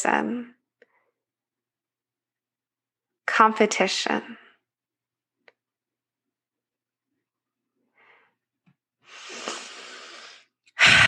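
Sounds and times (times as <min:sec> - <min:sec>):
speech: 0:00.0 - 0:00.6, 0:03.4 - 0:04.4
long soft breath in through the nose: 0:09.0 - 0:11.0
short loud forceful exhale through the mouth: 0:09.1 - 0:11.0.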